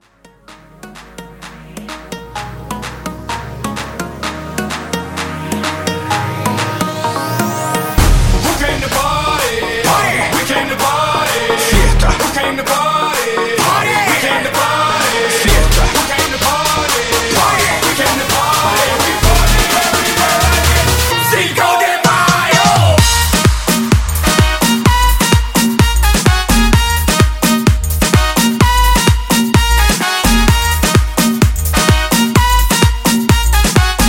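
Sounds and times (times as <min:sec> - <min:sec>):
Latin hybrid dance music: 0:00.0 - 0:34.0.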